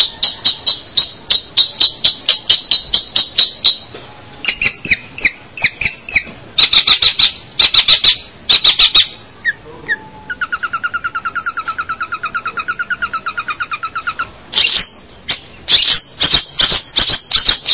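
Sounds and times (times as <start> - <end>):
bird chirping in high sharp notes: 0.0 - 17.7.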